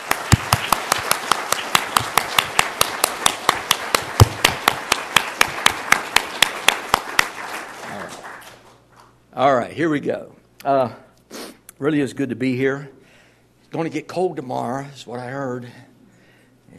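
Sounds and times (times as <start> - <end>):
audience clapping in welcome: 0.0 - 9.2
speech: 9.4 - 11.1, 11.8 - 13.0, 13.7 - 15.9.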